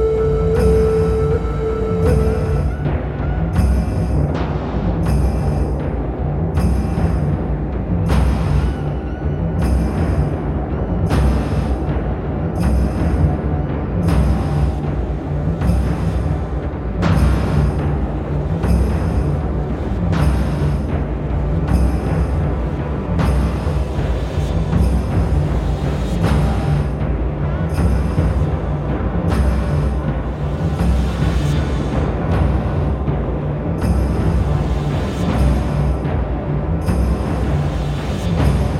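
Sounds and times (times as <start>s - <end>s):
drums: 0.0s - 38.7s.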